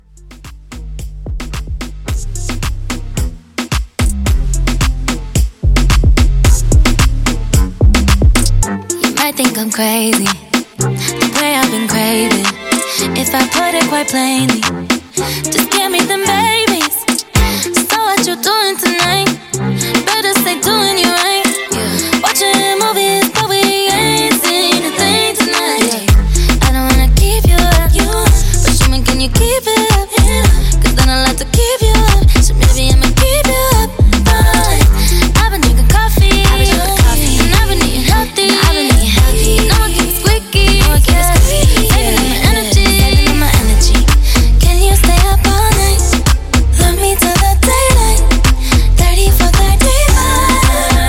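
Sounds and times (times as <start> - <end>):
moombahton drum beat: 0.2 - 51.0.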